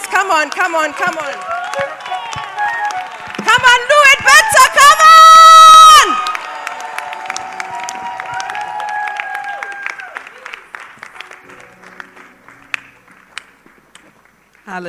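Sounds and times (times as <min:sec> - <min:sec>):
audience applause: 0:00.0 - 0:14.7
speech: 0:00.3 - 0:02.0
high cheers and whoops: 0:00.8 - 0:10.6.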